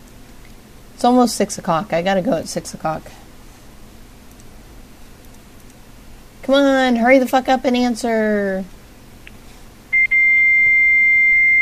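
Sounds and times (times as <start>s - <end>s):
speech: 1.0s - 3.2s, 6.5s - 8.8s
fax machine tones over phone line: 9.9s - 11.6s.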